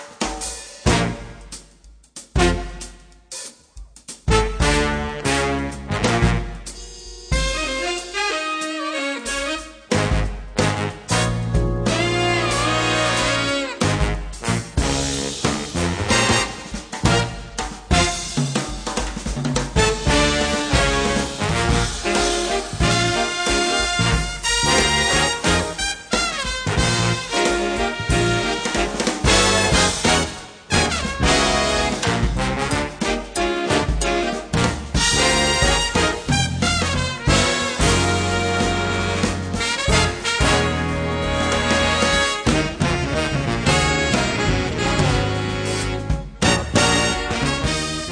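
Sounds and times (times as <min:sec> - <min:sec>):
slow funk music: 0:00.2 - 0:48.1.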